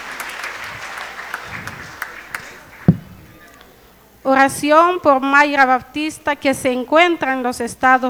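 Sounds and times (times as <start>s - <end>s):
audience applause: 0.0s - 3.5s
sharp loud clap or thump: 0.0s - 3.6s
speech: 4.2s - 8.0s.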